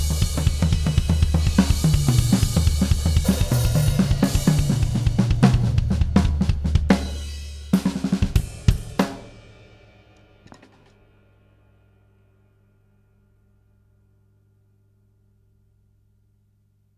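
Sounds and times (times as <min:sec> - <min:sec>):
drum test with reverb and bus compression: 0:00.0 - 0:11.4.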